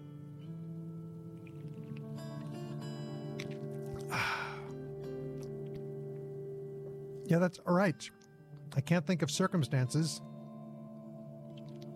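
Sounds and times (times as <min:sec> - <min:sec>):
slurping sip of a cola drink: 0:01.4 - 0:05.9
speech: 0:07.3 - 0:08.2, 0:08.8 - 0:10.3.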